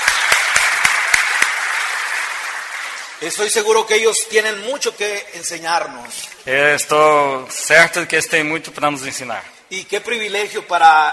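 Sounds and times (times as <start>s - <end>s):
audience applause: 0.0s - 3.4s
speech: 3.2s - 11.1s.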